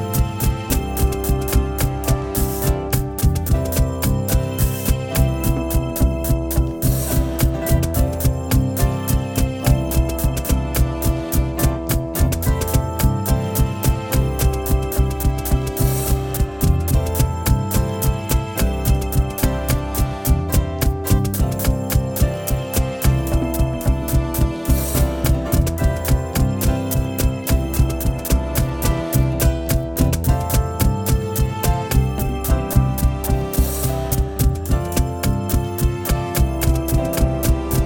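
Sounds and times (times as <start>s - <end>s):
calm desert-themed ambient music: 0.0s - 37.8s
crisp regular percussive taps: 0.2s - 37.8s.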